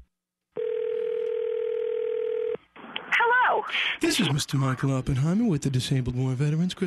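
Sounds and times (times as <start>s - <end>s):
telephone call tone: 0.6s - 2.6s
speech: 3.6s - 6.8s.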